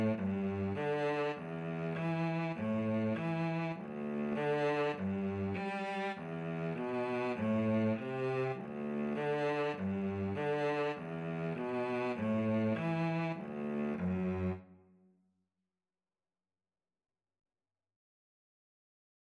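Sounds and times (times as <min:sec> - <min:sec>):
cello duet: 0:00.0 - 0:15.0.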